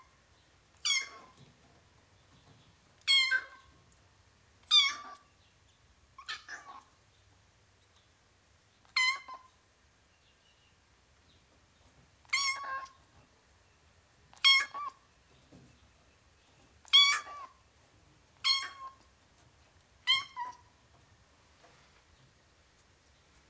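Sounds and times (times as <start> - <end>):
kitten meowing: 0.8 - 1.3, 3.1 - 3.6, 12.3 - 13.0, 14.4 - 15.0, 16.9 - 17.5, 18.4 - 19.0, 20.1 - 20.6.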